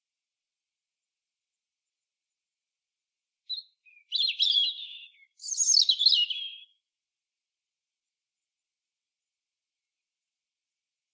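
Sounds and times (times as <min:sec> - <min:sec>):
European robin warbling song: 0:03.5 - 0:06.8.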